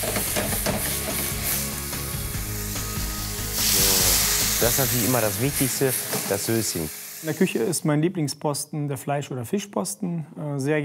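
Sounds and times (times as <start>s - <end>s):
white wine sizzling in a hot pan with pepper, allspice and juniper: 0.0s - 7.8s
speech: 4.6s - 10.8s.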